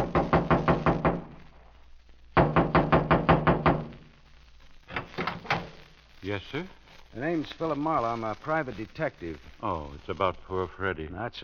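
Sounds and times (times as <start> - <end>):
knocking on a trailer door: 0.0 - 1.3, 2.4 - 3.9
speech: 6.3 - 11.4.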